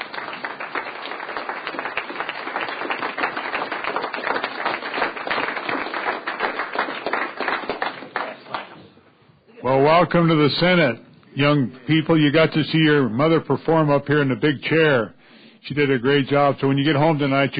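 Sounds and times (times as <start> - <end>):
crowd applause in the Senate chamber: 0.0 - 8.8
speech: 10.0 - 17.5.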